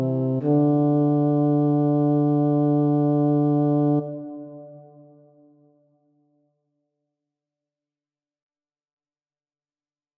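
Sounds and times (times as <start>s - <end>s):
bass: 0.0s - 4.2s.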